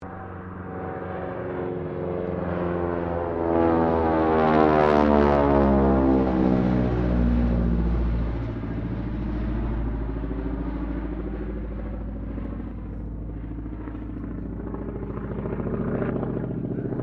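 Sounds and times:
AT-6D Harvard Mk III aircraft pass: 0.0 - 17.0.

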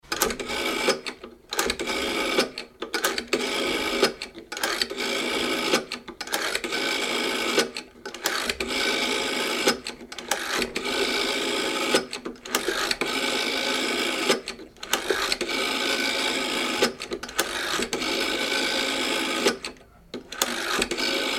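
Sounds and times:
Bakelite phone 706 model dialing: 0.1 - 21.3.

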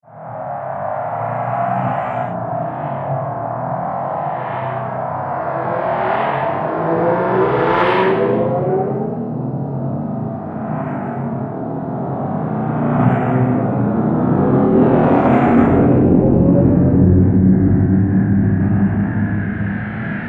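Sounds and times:
space car soundscape drone: 0.0 - 20.2.

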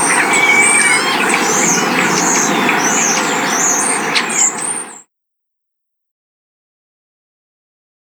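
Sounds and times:
birds singing in spring in a coastal town: 0.0 - 5.0.

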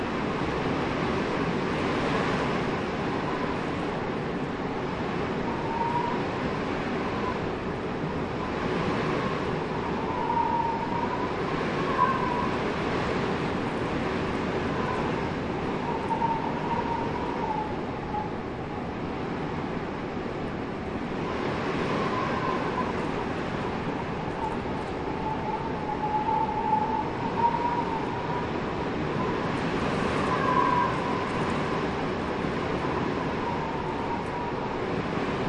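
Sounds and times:
ice cold howling blustery wind whistle: 0.0 - 35.4.

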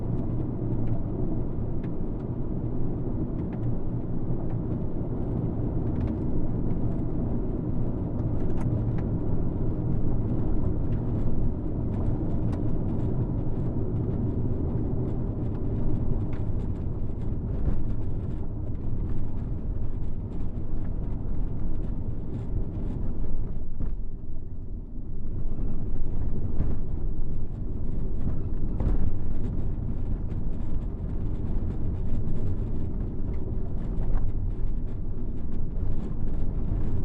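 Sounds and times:
hatchback car interior ride on bumpy dirt road accelerating and decelerating: 0.0 - 37.0.

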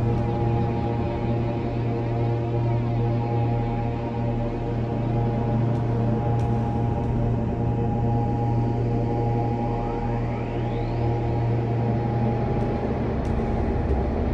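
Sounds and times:
deep horror drone with voice tones: 0.0 - 14.3.

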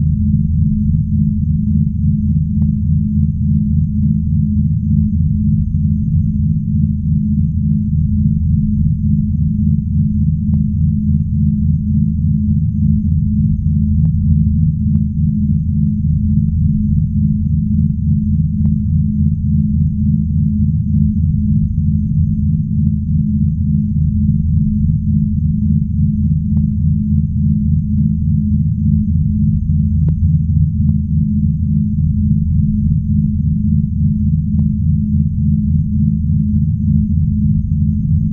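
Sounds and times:
spaceship drone hum: 0.0 - 38.3.

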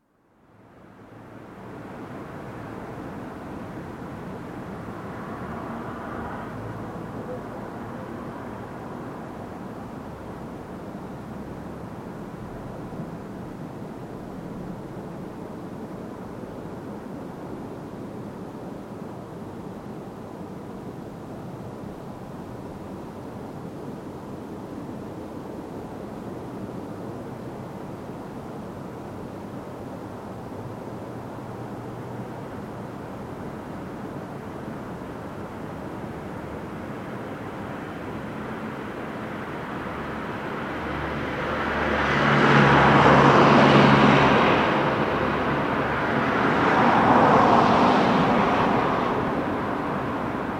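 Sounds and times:
vehicles passing close and mid distance in night traffic: 2.0 - 13.1, 30.6 - 50.5.

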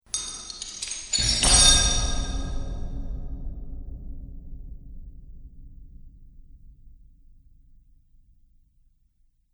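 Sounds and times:
dungeon chains impact clinking clattering and clanging: 0.0 - 2.8.

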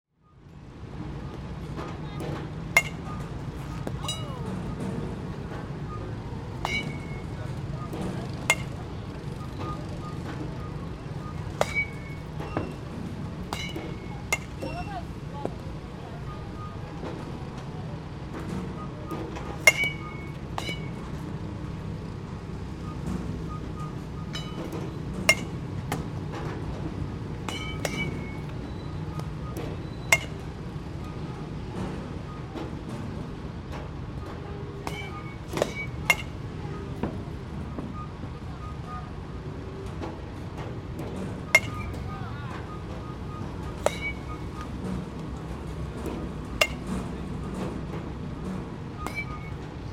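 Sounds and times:
batting cage ambience: 0.2 - 49.9.

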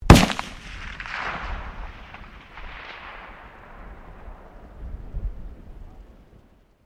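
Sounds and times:
MAG-1 rifle firing: 0.0 - 3.8.

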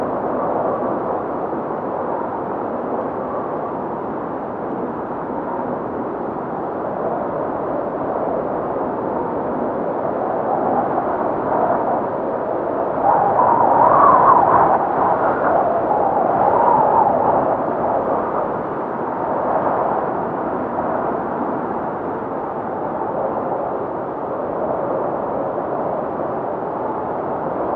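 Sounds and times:
cold wind storm: 0.0 - 27.7.

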